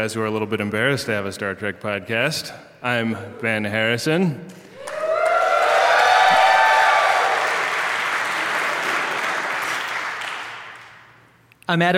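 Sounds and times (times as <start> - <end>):
speech: 0.0 - 4.6, 11.7 - 11.9
audience applause: 4.8 - 11.1.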